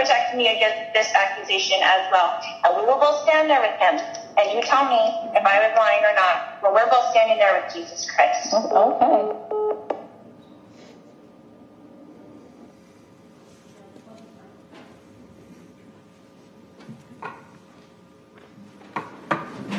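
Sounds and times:
speech: 0.4 - 9.6
phone call line tones: 9.2 - 9.9.

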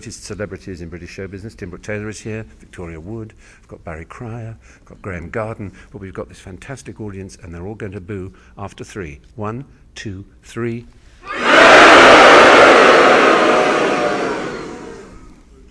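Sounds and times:
audience: 11.3 - 15.3.

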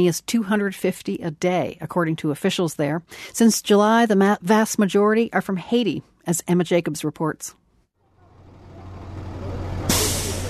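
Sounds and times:
speech: 0.0 - 7.6
school bus engine drone pulling up and idling: 8.0 - 10.4
school bus air brakes hissing: 8.8 - 10.4.

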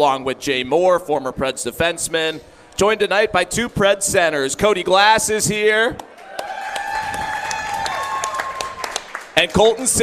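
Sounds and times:
speech: 0.0 - 6.1, 9.4 - 10.0
crowd applauding: 6.1 - 10.0.

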